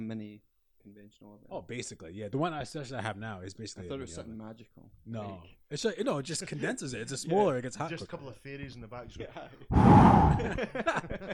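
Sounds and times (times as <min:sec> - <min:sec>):
speech: 0:01.1 - 0:11.3
loud breath in near the microphone: 0:09.7 - 0:10.6
laughter: 0:10.3 - 0:11.3.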